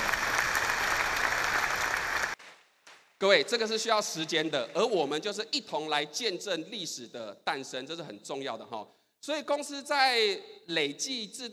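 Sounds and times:
audience applause: 0.0 - 2.4
speech: 3.2 - 11.5.

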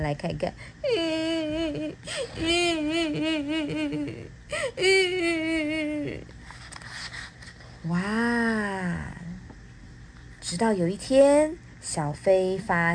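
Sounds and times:
speech: 0.0 - 6.4, 7.8 - 9.2, 10.5 - 12.9
crying: 0.9 - 6.2.

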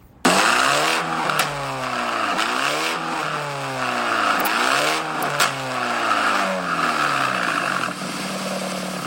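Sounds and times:
engine with aftermarket exhaust revving: 0.2 - 9.0.

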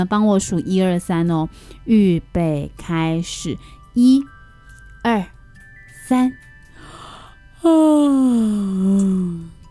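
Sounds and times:
speech: 0.0 - 4.4, 5.0 - 5.4, 6.1 - 6.5, 7.6 - 9.5
exaggerated vocal yawn: 7.2 - 9.6.

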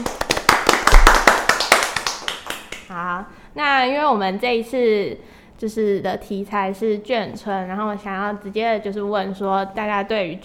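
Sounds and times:
applause welcoming guests: 0.0 - 2.9
speech: 3.0 - 10.4.

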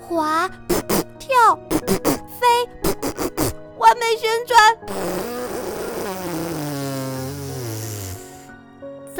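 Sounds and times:
speech: 0.1 - 0.7
fart: 0.7 - 3.6, 4.8 - 8.6.

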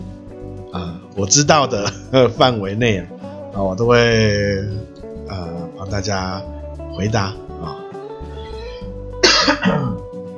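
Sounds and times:
speech: 0.7 - 7.8
person coughing: 9.2 - 10.0.

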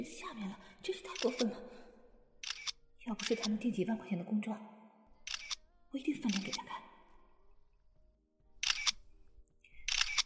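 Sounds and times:
speech: 0.0 - 1.8, 3.1 - 4.8, 5.9 - 6.9
phone camera shutter taking photos: 2.4 - 3.5, 5.3 - 5.6, 8.6 - 9.0, 9.9 - 10.2.

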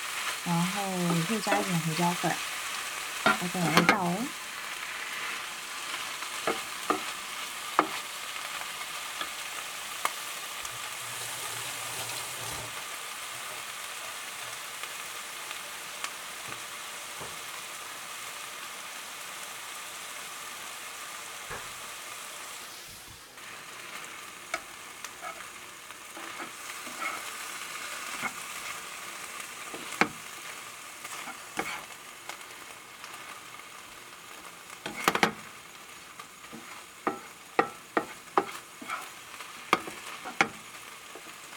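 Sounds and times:
salted egg yolk and squid sizzling in a pan: 0.0 - 41.5
speech: 0.4 - 2.5, 3.4 - 4.4
stirring clicks and scrapes: 26.2 - 27.3, 31.1 - 31.9, 34.8 - 35.4, 36.5 - 41.3.

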